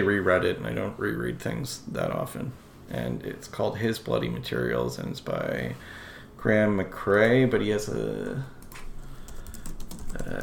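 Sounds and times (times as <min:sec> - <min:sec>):
speech: 0:00.0 - 0:08.8, 0:10.2 - 0:10.4
computer keyboard typing: 0:08.2 - 0:10.4.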